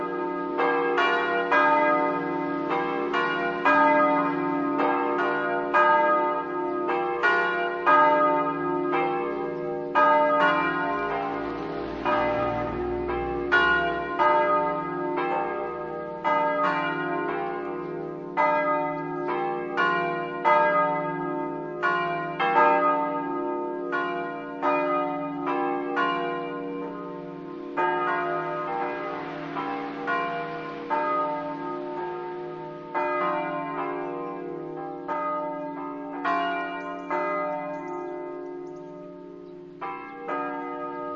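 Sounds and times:
church bells ringing in Orzano: 0.0s - 41.1s.

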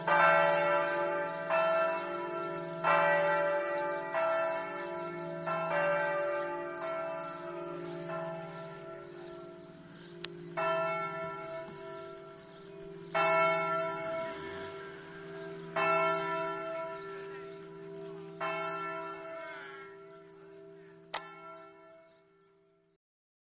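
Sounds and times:
bells ringing in Pasiano: 0.0s - 22.1s.

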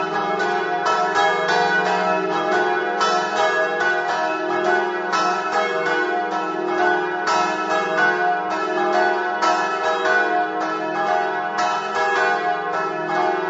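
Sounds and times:
third bells ringing: 0.0s - 13.4s.

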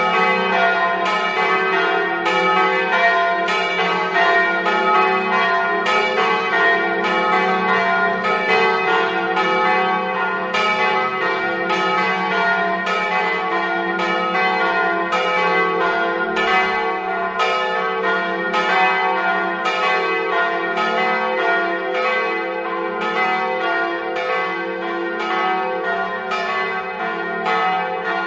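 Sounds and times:
bells ringing: 0.0s - 28.2s.

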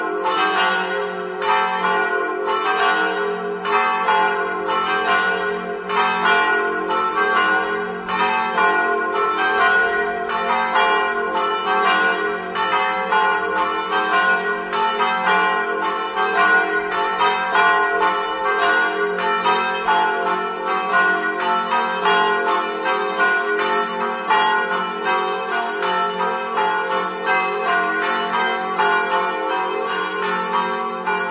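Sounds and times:
bells ringing: 0.0s - 31.2s.

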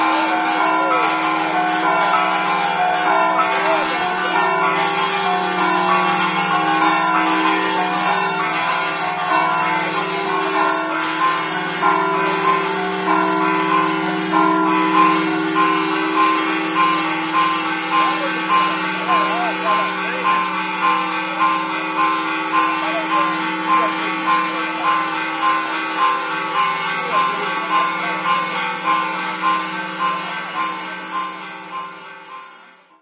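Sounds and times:
bells: 0.0s - 33.0s.

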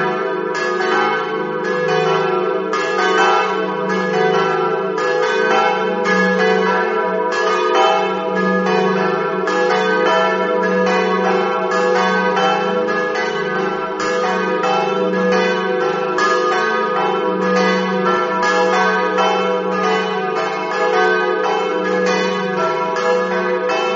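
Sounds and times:
bells ringing in Latisana: 0.0s - 23.9s.

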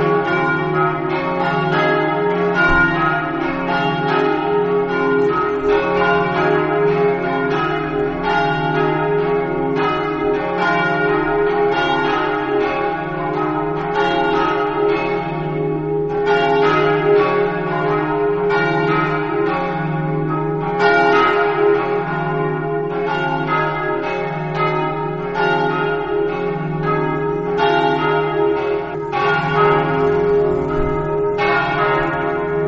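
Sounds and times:
church bells ringing: 0.0s - 32.6s.

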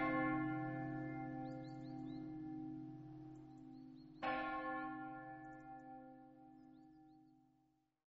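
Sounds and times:
bells ringing in Montenars: 0.0s - 6.1s.

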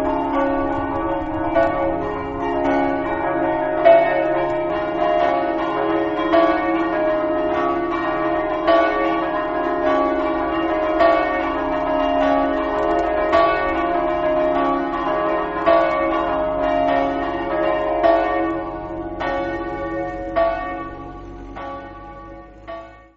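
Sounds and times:
bells: 0.0s - 23.1s.

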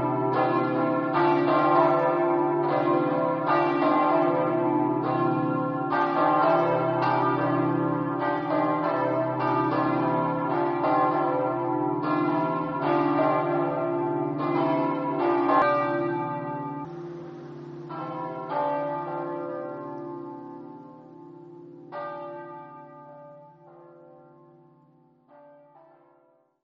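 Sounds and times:
bells ringing: 0.0s - 24.6s.

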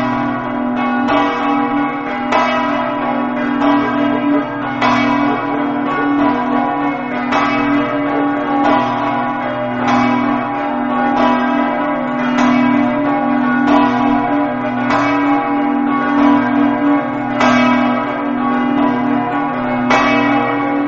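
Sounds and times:
church bells ringing: 0.0s - 20.8s.

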